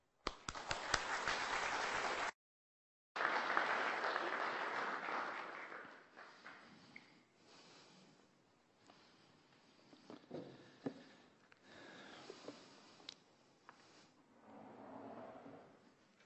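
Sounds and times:
audience applause welcoming a visiting reverend: 0.3s - 2.4s, 3.2s - 6.7s.

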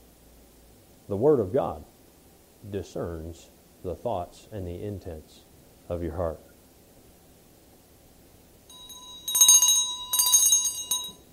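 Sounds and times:
speech: 1.1s - 1.9s, 2.6s - 6.5s
bell ringing in front of microphone: 8.7s - 11.3s.

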